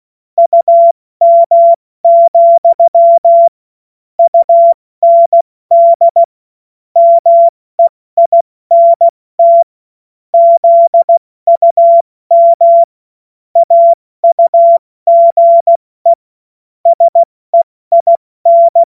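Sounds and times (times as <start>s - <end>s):
morse code beeps: 0.4s - 3.5s, 4.2s - 6.2s, 7.0s - 9.7s, 10.4s - 12.9s, 13.6s - 16.2s, 16.9s - 18.9s.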